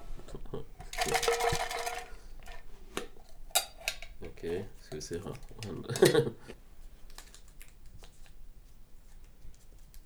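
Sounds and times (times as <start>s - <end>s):
jar of paper slips shaken: 0.3s - 6.4s
speech: 5.0s - 6.6s
laughter: 5.6s - 6.6s.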